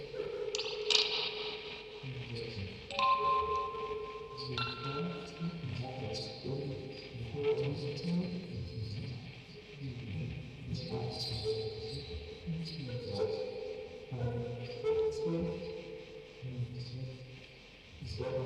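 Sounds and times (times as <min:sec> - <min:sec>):
field recording ambience: 0:00.0 - 0:18.4
vocoder: 0:00.0 - 0:18.4
quartet of music boxes playing: 0:02.9 - 0:05.1.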